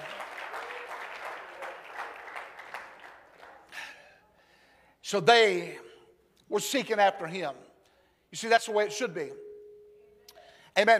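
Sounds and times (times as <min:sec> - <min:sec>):
audience clapping hands: 0:00.0 - 0:03.9
speech: 0:05.1 - 0:05.8, 0:06.5 - 0:07.7, 0:08.3 - 0:09.4, 0:10.8 - 0:10.9.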